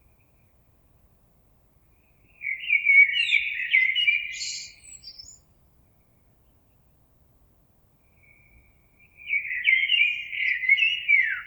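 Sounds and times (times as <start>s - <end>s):
common blackbird singing fluty phrases: 2.3s - 5.4s, 9.0s - 11.4s.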